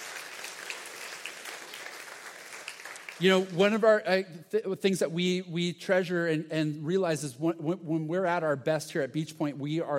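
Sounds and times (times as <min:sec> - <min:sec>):
audience applause: 0:00.0 - 0:03.6
speech: 0:03.2 - 0:09.9.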